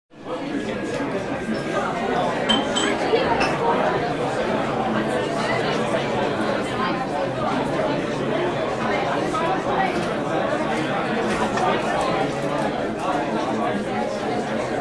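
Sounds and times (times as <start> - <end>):
crowded restaurant: 0.1 - 14.8.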